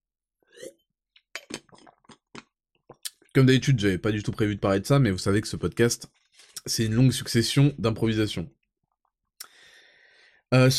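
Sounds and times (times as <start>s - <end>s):
person sipping Play Endurance: 0.5s - 0.8s, 1.4s - 3.2s
speech: 3.4s - 8.6s, 10.5s - 10.7s.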